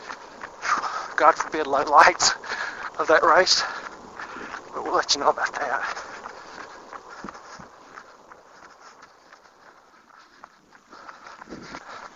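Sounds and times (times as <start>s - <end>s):
constant wash of broadband noise: 0.0s - 9.5s
footsteps of a person running: 0.0s - 12.1s
speech: 1.2s - 3.8s, 4.8s - 6.1s.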